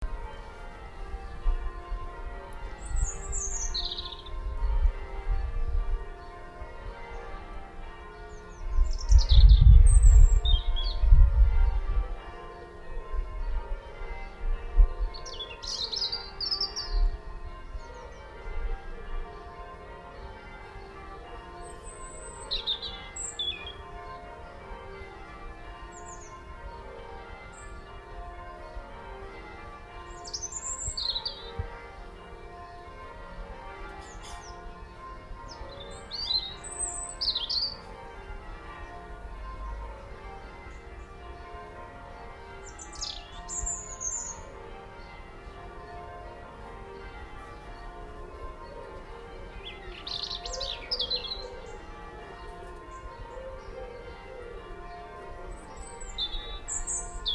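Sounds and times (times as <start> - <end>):
church bells ringing: 0.0 - 57.3
birdsong: 2.8 - 4.8, 7.0 - 11.1, 15.1 - 17.1, 19.2 - 24.6, 25.8 - 26.5, 30.1 - 32.2, 34.0 - 34.7, 35.4 - 37.9, 42.6 - 45.2, 49.5 - 57.3.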